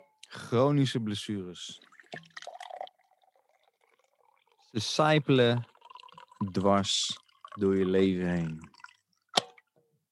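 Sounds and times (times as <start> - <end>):
speech: 0.5 - 2.3, 4.7 - 5.7, 6.4 - 8.8
tea pouring into a cup: 1.7 - 9.3.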